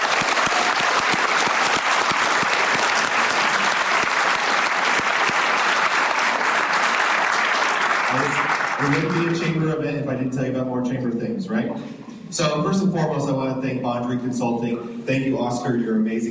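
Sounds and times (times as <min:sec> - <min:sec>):
audience applause: 0:00.0 - 0:09.5
speech: 0:08.8 - 0:16.2.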